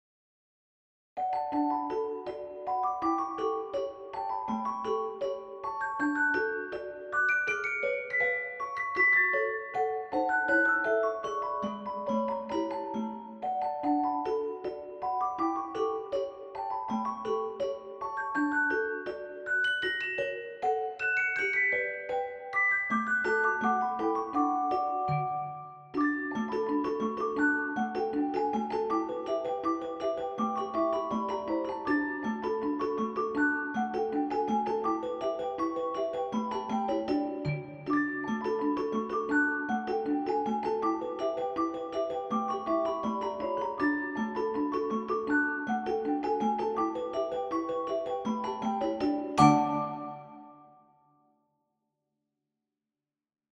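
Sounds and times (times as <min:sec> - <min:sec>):
celeste: 0:01.2 - 0:51.0.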